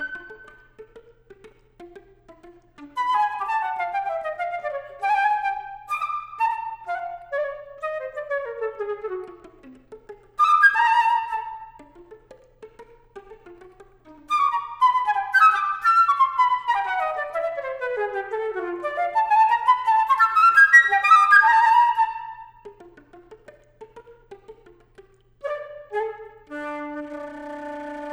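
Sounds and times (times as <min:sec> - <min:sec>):
flute: 0:00.0 - 0:00.9, 0:02.5 - 0:12.2, 0:14.2 - 0:22.9, 0:25.4 - 0:28.1.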